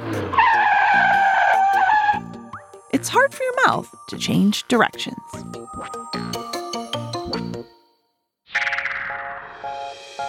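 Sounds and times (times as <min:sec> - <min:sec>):
car tires skidding in a fast turn: 0:00.0 - 0:02.3
speech: 0:03.0 - 0:06.2.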